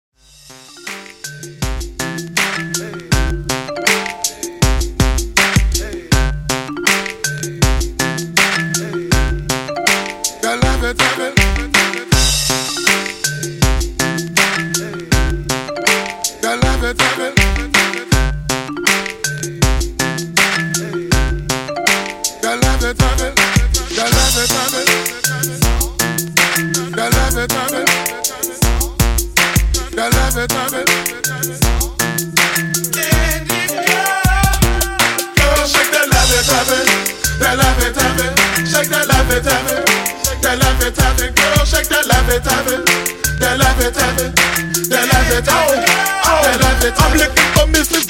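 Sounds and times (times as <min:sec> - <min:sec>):
hip hop beat at 160 BPM: 0:00.2 - 0:48.0.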